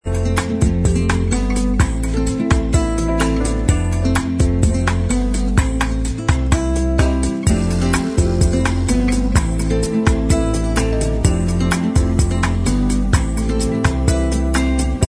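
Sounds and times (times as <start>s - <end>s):
bossa nova instrumental backing track: 0.0s - 15.0s.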